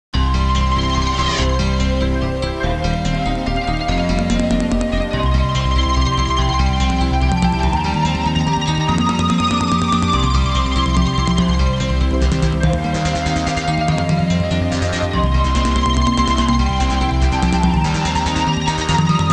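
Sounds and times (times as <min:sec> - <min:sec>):
electronic music: 0:00.2 - 0:19.3.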